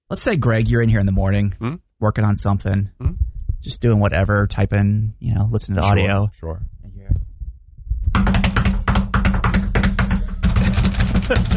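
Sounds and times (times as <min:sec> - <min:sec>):
speech: 0:00.1 - 0:06.7, 0:11.3 - 0:11.5
knuckles drumming on a desk: 0:08.0 - 0:11.5.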